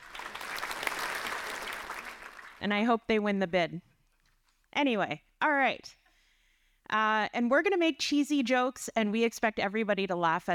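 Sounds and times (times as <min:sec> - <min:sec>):
crowd clapping: 0:00.0 - 0:02.6
speech: 0:02.6 - 0:03.9, 0:04.8 - 0:06.0, 0:06.9 - 0:10.5.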